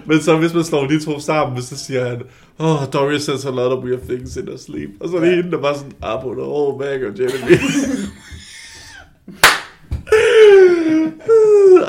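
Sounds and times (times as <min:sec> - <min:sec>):
speech: 0:00.1 - 0:08.2
laughter: 0:07.2 - 0:08.9
loud hand clap: 0:09.3 - 0:10.2
person making a sustained slowly falling vocal sound: 0:10.1 - 0:11.8.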